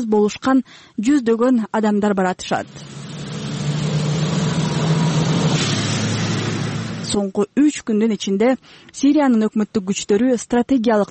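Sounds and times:
speech: 0:00.0 - 0:03.0, 0:07.1 - 0:11.1
dozens of cargo trucks rumbling toward the Turkish border: 0:02.6 - 0:07.2.

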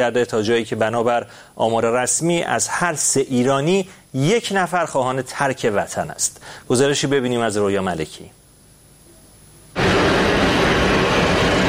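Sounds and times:
speech: 0:00.0 - 0:08.4
airplane taking off: 0:09.8 - 0:11.6.

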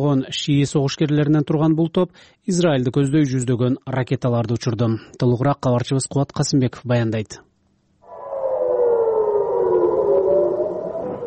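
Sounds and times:
speech: 0:00.0 - 0:07.5
air raid siren in northern Israel near the Lebanese border: 0:08.0 - 0:11.2.

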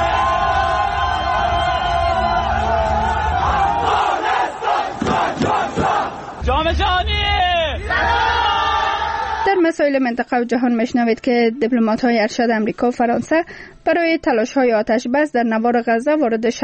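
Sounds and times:
whistling-like whoops: 0:00.0 - 0:03.6
large crowd cheering and shouting: 0:00.0 - 0:09.6
speech: 0:09.6 - 0:16.6.

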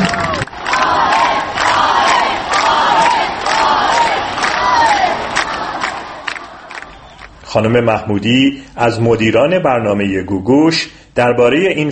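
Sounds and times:
large audience cheering and applauding: 0:00.0 - 0:07.4
speech: 0:07.6 - 0:11.9.

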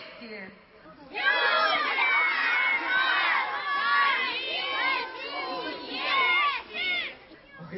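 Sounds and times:
large outdoor crowd shouting and cheering: 0:00.9 - 0:07.6.

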